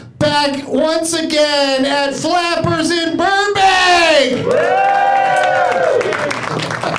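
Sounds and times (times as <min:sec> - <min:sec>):
speech: 0:00.4 - 0:05.0
live crowd cheering and whooping: 0:04.3 - 0:06.9.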